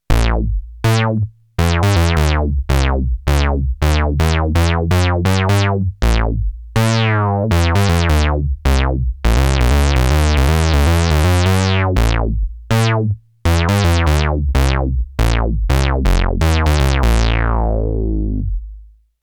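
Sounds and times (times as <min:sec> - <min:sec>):
bass: 0:00.0 - 0:19.1.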